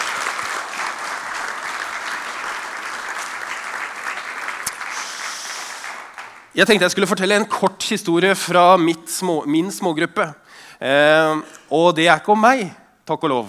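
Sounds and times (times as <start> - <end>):
applause: 0.0 - 7.0
speech: 6.6 - 13.4.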